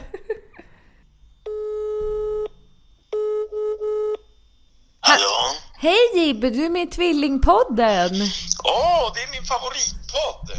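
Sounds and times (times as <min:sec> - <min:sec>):
laughter: 0:00.0 - 0:00.9
phone call ringing tone: 0:01.4 - 0:04.2
speech: 0:05.1 - 0:10.5.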